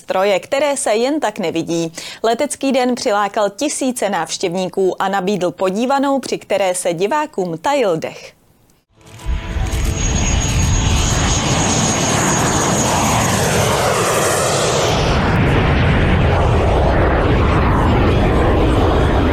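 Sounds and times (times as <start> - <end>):
speech: 0.1 - 8.4
roaring aircraft engines at an air show: 9.0 - 19.3.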